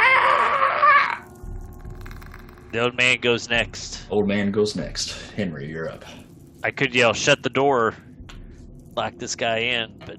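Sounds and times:
person imitating an unholy wail: 0:00.0 - 0:01.2
speech: 0:02.7 - 0:08.1, 0:09.0 - 0:10.1.

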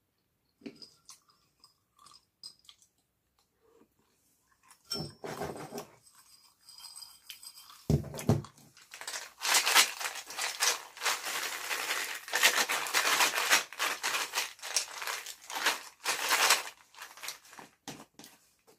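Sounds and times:
peanuts crunched and chewed: 0:01.0 - 0:03.5, 0:08.9 - 0:17.5
paper towels rustling: 0:08.8 - 0:17.8.

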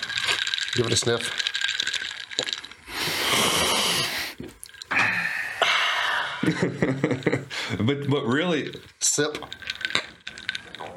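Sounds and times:
drink being shaken: 0:00.0 - 0:04.9, 0:06.4 - 0:10.9
speech: 0:00.7 - 0:01.5, 0:07.9 - 0:09.6
breathy sounds: 0:02.9 - 0:06.4, 0:07.5 - 0:07.8.

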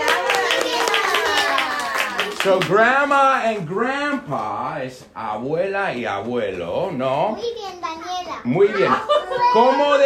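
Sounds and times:
hand clapping applause: 0:00.0 - 0:02.8
speech: 0:02.4 - 0:10.0.

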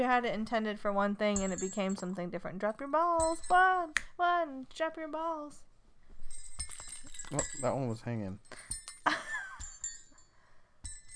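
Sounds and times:
speech: 0:00.0 - 0:05.7, 0:07.3 - 0:09.2
jingle bell ringing: 0:01.2 - 0:02.2, 0:03.0 - 0:03.9, 0:06.2 - 0:11.1.

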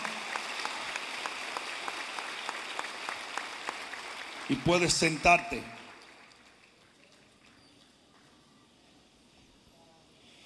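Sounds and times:
audience applause: 0:00.0 - 0:07.7
speech: 0:04.5 - 0:05.8.

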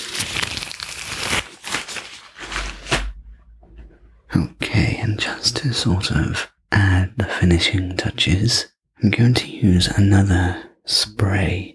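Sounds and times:
gloves crinkling while being removed: 0:00.0 - 0:03.2
speech: 0:04.4 - 0:11.7.

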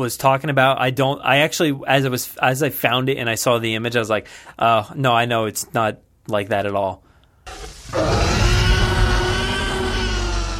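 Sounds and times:
speech: 0:00.0 - 0:08.1
dinosaur roar recording: 0:07.5 - 0:10.5.

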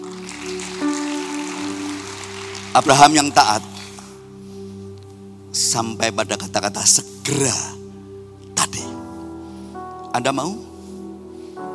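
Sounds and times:
audience applause: 0:00.0 - 0:04.2
sustained low keyboard chords: 0:00.0 - 0:11.7
speech: 0:02.8 - 0:03.7, 0:05.5 - 0:07.8, 0:10.1 - 0:10.7.

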